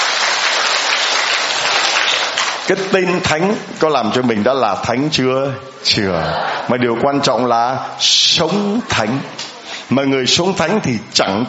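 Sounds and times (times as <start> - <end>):
audience applause: 0.0 - 3.0
speech: 2.7 - 11.4.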